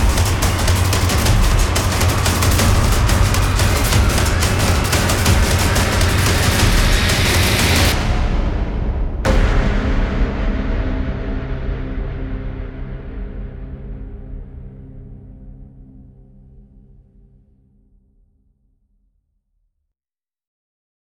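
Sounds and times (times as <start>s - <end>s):
percussion: 0.0s - 15.6s.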